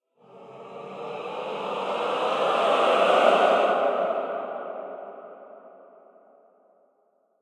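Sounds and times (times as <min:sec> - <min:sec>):
choir singing: 0:00.2 - 0:05.8.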